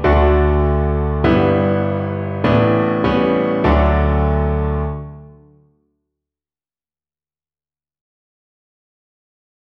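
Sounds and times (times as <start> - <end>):
piano accompaniment: 0.0 - 5.7.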